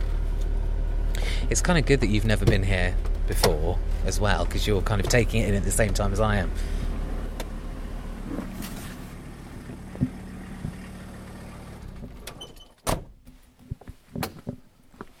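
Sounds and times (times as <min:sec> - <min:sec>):
van engine idling: 0:00.0 - 0:12.3
speech: 0:01.5 - 0:06.8.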